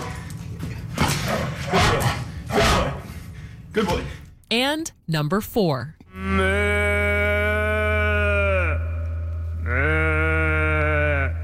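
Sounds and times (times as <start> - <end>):
constant low hum: 0.0 - 11.4
speech: 3.8 - 6.6
imitation cow moos: 6.1 - 11.4.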